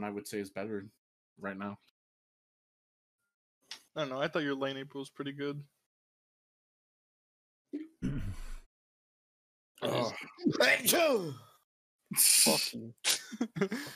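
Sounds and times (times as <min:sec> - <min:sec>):
speech: 0:00.0 - 0:01.9, 0:04.0 - 0:05.8, 0:07.7 - 0:08.5, 0:09.8 - 0:11.5, 0:12.1 - 0:13.9
person sneezing: 0:12.1 - 0:13.3.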